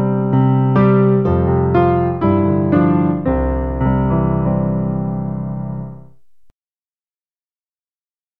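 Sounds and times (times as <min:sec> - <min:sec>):
piano piece: 0:00.0 - 0:06.5.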